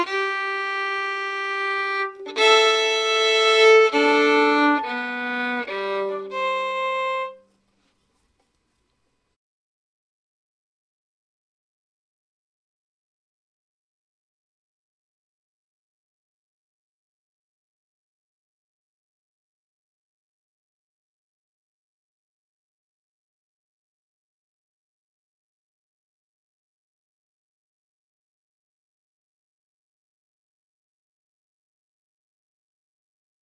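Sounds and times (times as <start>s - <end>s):
violin playing without double stops: 0.0s - 7.5s.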